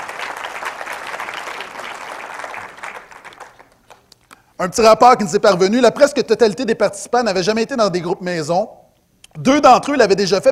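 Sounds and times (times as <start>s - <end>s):
crowd applause: 0.0s - 4.0s
speech: 4.6s - 8.8s, 9.4s - 10.5s.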